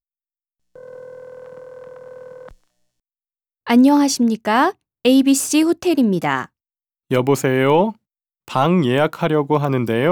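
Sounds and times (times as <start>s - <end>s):
public telephone dial tone: 0.8s - 2.6s
speech: 3.7s - 6.5s, 7.1s - 10.1s.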